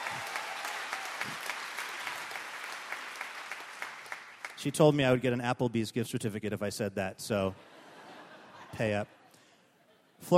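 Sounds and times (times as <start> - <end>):
audience applause: 0.0 - 4.7
speech: 4.6 - 7.7, 8.7 - 9.2
laughter: 7.5 - 10.3.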